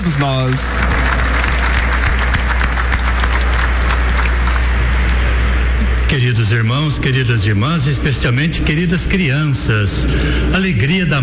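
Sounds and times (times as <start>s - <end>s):
crowd applauding: 0.0s - 5.2s
speech: 0.2s - 0.8s, 6.5s - 11.2s.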